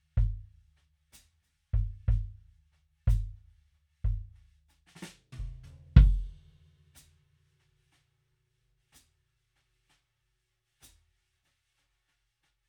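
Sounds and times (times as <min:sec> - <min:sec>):
kick drum through an EQ: 0:00.0 - 0:00.6, 0:01.8 - 0:02.5, 0:03.1 - 0:03.4, 0:04.1 - 0:04.4, 0:05.4 - 0:06.4.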